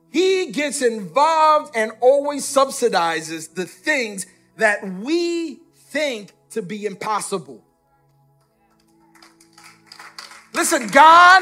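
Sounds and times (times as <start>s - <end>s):
speech: 0.5s - 7.6s, 10.6s - 11.4s
person clapping: 8.7s - 11.2s.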